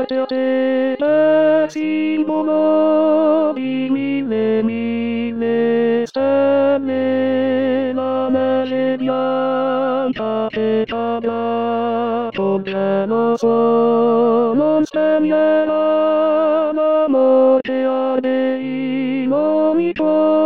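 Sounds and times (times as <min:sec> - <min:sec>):
tenors singing a Christmas carol: 0:00.0 - 0:20.4.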